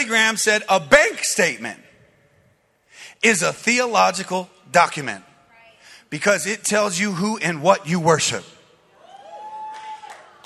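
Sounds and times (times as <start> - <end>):
speech: 0.1 - 1.9, 3.2 - 5.3, 6.1 - 8.6
small audience clapping: 9.6 - 10.4.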